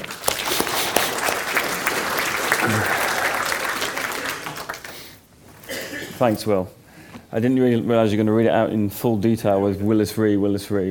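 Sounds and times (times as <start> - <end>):
audience applause welcoming a speaker to the stage: 0.0 - 5.2
speech: 6.2 - 10.8.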